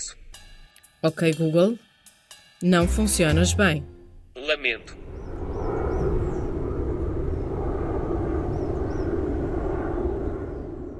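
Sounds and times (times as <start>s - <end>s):
speech: 1.0s - 1.9s, 2.6s - 5.0s
commercial airplane: 4.4s - 10.9s.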